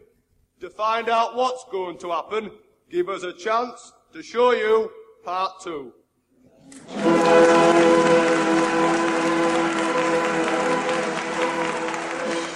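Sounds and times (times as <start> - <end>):
speech: 0.6 - 6.0
prolonged applause for a music theatre group: 6.8 - 12.5.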